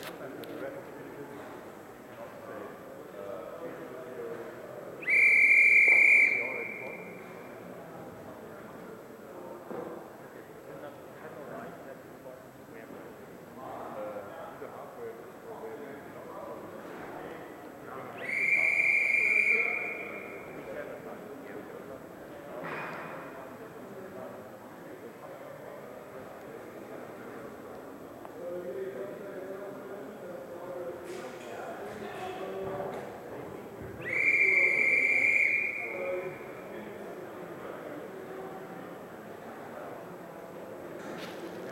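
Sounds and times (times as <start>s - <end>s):
whistles: 5.0s - 7.4s, 18.2s - 20.7s, 34.0s - 36.6s.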